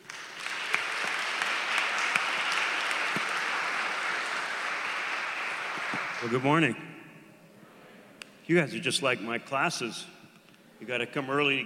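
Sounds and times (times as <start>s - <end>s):
audience applause welcoming a speaker at a talk: 0.0s - 6.8s
speech: 6.2s - 6.9s, 8.5s - 10.2s, 10.8s - 11.6s.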